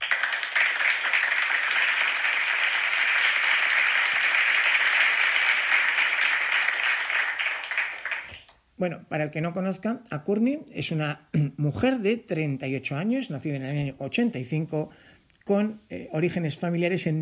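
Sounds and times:
audience applause: 0:00.0 - 0:08.5
speech: 0:08.8 - 0:17.2.

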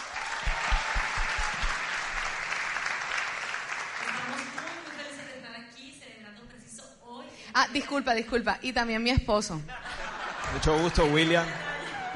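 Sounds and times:
audience applause: 0:00.0 - 0:04.9
speech: 0:07.6 - 0:09.8, 0:10.5 - 0:12.1
laughter: 0:09.7 - 0:12.1.

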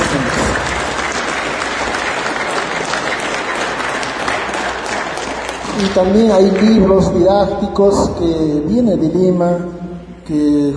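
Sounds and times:
audience applause: 0:00.0 - 0:07.3
speech: 0:05.8 - 0:10.7.

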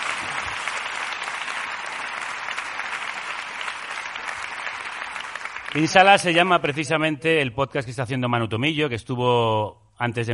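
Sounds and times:
audience applause: 0:00.0 - 0:06.8
speech: 0:05.7 - 0:10.3.

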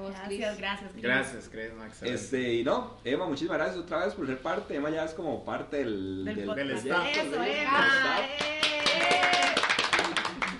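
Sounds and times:
speech: 0:00.1 - 0:08.6
one person clapping: 0:08.1 - 0:10.5.

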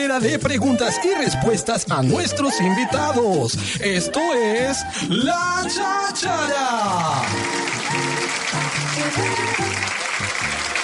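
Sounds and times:
speech: 0:00.1 - 0:08.1, 0:08.7 - 0:10.8
short applause from studio audience: 0:06.3 - 0:10.8.

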